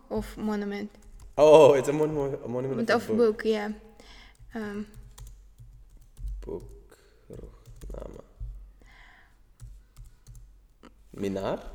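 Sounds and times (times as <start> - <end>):
speech: 0.1 - 5.0, 6.4 - 8.2, 11.2 - 11.7
keystrokes on a computer keyboard typing a search word: 4.2 - 8.6, 9.6 - 10.5.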